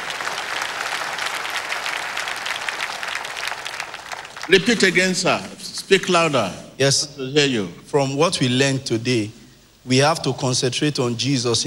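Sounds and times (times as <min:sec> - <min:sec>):
audience clapping: 0:00.0 - 0:05.6
speech: 0:04.5 - 0:11.6.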